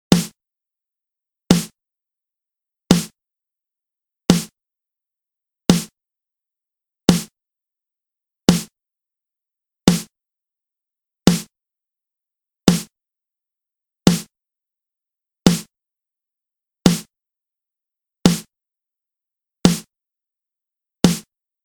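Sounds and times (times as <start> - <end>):
hip hop main snare drum: 0.1 - 0.4, 1.5 - 1.7, 2.9 - 3.2, 4.3 - 4.5, 5.7 - 5.9, 7.1 - 7.3, 8.5 - 8.7, 9.9 - 10.1, 11.3 - 11.5, 12.7 - 12.9, 14.1 - 14.3, 15.5 - 15.7, 16.9 - 17.1, 18.3 - 18.5, 19.7 - 19.9, 21.0 - 21.3.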